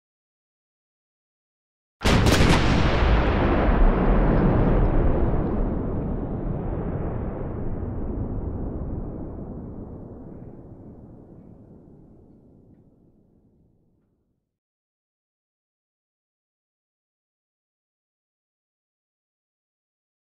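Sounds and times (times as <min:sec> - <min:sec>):
artillery fire: 0:02.0 - 0:12.6.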